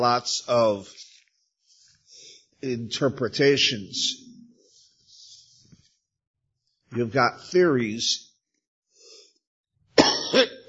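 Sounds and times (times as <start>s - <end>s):
speech: 0.0s - 1.0s, 2.6s - 4.2s, 6.9s - 8.3s
person coughing: 10.0s - 10.6s.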